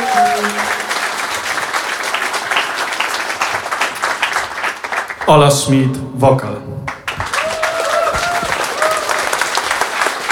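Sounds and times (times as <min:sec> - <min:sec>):
brief tonal note: 0:00.0 - 0:01.1
audience applause: 0:00.0 - 0:05.6, 0:06.9 - 0:10.3
speech: 0:05.3 - 0:06.9.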